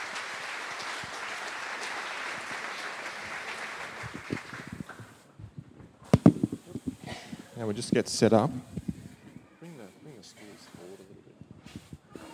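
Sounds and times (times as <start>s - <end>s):
audience applauding to welcome a couple onto the stage: 0.0s - 5.3s
speech: 7.6s - 8.8s.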